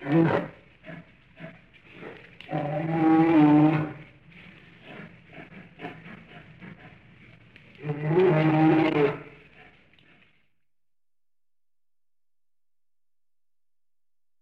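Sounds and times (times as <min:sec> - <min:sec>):
bear roaring: 0:00.0 - 0:10.2.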